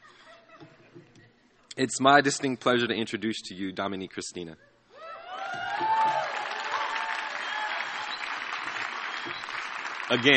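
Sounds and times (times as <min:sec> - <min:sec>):
speech: 0:01.8 - 0:04.7, 0:10.1 - 0:10.3
whoops and cheers: 0:05.0 - 0:08.5
audience applause: 0:05.3 - 0:10.3.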